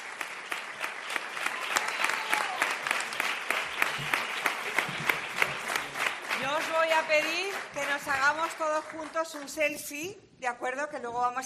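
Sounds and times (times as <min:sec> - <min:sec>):
audience applause at a live Spanish-language event: 0:00.0 - 0:09.3
speech: 0:07.0 - 0:11.4.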